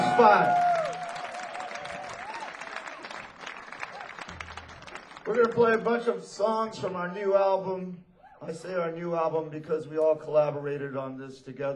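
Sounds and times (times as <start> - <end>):
audience applause: 0.0 - 6.2
speech: 0.2 - 0.6, 5.3 - 11.7.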